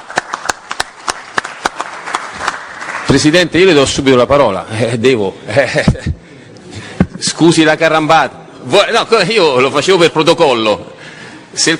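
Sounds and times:
sparse hand claps greeting an Italian senator: 0:00.0 - 0:03.2
speech: 0:03.1 - 0:06.2, 0:07.2 - 0:10.9, 0:11.6 - 0:11.7.

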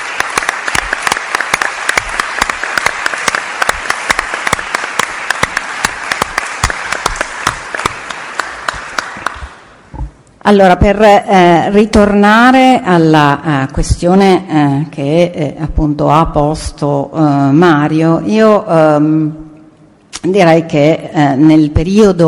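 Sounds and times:
audience applause: 0:00.0 - 0:09.7
speech: 0:10.5 - 0:19.4, 0:20.2 - 0:22.2.

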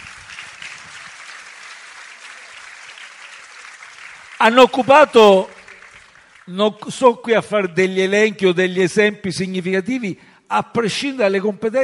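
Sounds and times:
applause: 0:00.0 - 0:07.2
speech: 0:04.4 - 0:05.6, 0:06.5 - 0:11.8.

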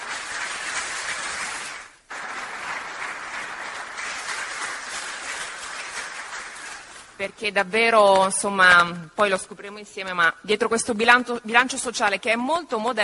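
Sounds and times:
audience applause: 0:00.0 - 0:07.2
speech: 0:07.2 - 0:13.0.

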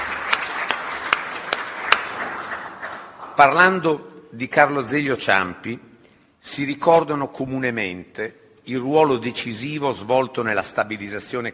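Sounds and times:
affectionate audience applause: 0:00.0 - 0:03.6
speech: 0:03.4 - 0:11.5.

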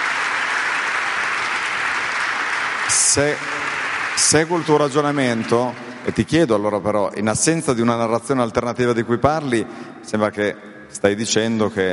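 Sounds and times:
applause: 0:00.0 - 0:07.5
speech: 0:02.9 - 0:03.6, 0:04.2 - 0:11.9.

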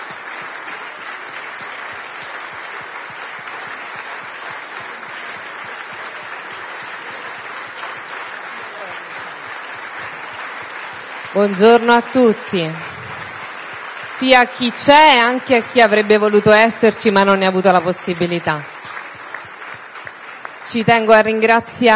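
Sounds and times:
audience applause: 0:00.0 - 0:21.9
speech: 0:11.3 - 0:12.9, 0:14.2 - 0:18.7, 0:20.7 - 0:21.9.

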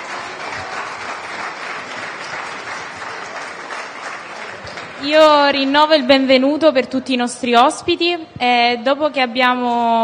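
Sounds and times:
audience applause: 0:00.0 - 0:06.3
speech: 0:05.0 - 0:10.0.

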